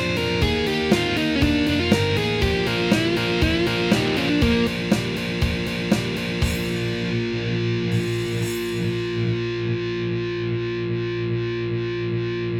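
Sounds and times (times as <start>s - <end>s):
slow rock guitar solo: 0.0s - 12.5s.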